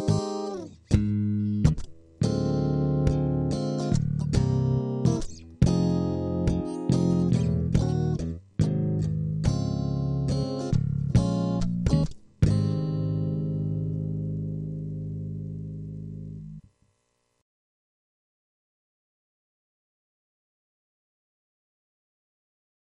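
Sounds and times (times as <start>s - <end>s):
guitar: 0.0s - 16.7s.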